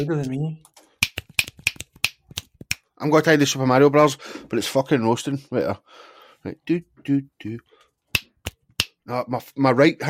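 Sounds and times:
speech: 0:00.0 - 0:00.7, 0:03.0 - 0:07.7, 0:09.1 - 0:10.0
loud crisp finger snaps: 0:01.0 - 0:02.9, 0:08.1 - 0:09.0.

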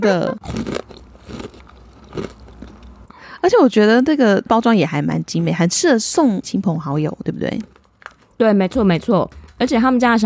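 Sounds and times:
speech: 0:00.0 - 0:01.4, 0:03.5 - 0:07.8, 0:08.4 - 0:10.2
biting a crunchy Earl Grey tea biscuit: 0:00.4 - 0:03.0.

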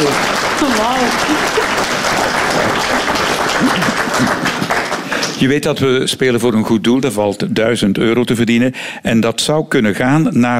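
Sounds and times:
audience applause: 0:00.0 - 0:05.6
speech: 0:05.4 - 0:10.5
laughter: 0:09.0 - 0:10.5.

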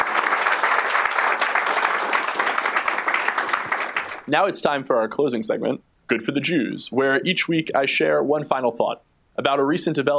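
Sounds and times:
audience applause: 0:00.0 - 0:04.3
speech: 0:04.3 - 0:10.1.

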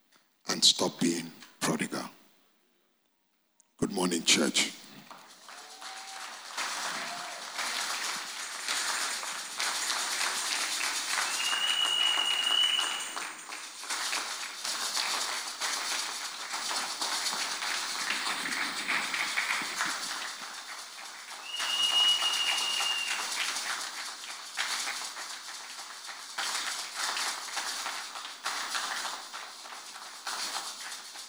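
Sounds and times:
speech: 0:00.6 - 0:02.1, 0:04.1 - 0:04.8
audience clapping: 0:03.8 - 0:31.2
brief high whistling tones: 0:11.1 - 0:13.6, 0:21.3 - 0:23.6.

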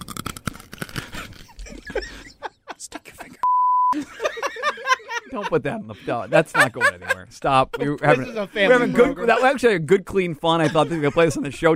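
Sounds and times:
person biting into crunchy food: 0:00.0 - 0:01.8
laughter: 0:01.5 - 0:11.7
speech: 0:05.4 - 0:11.7.

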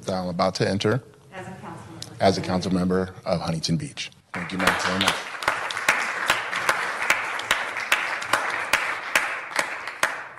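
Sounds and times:
speech: 0:00.1 - 0:01.5, 0:02.2 - 0:05.3
polite golf clap applause from audience: 0:04.3 - 0:10.3.

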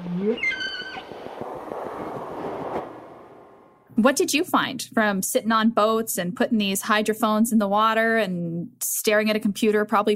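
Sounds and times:
speech: 0:00.1 - 0:00.6, 0:04.0 - 0:10.1
humpback whale song underwater: 0:00.2 - 0:02.1
steady hiss and crackle: 0:00.6 - 0:03.9.

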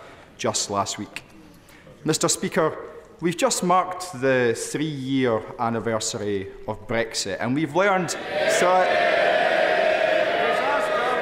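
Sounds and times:
speech: 0:00.4 - 0:01.3, 0:02.0 - 0:09.2
MPs cheering and shouting in the House of Commons: 0:08.3 - 0:11.2.

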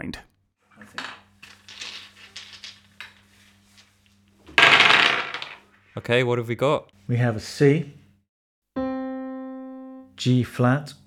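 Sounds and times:
speech: 0:00.0 - 0:00.3, 0:06.0 - 0:08.0, 0:10.2 - 0:11.0
musician's dice rolling: 0:00.8 - 0:05.7.

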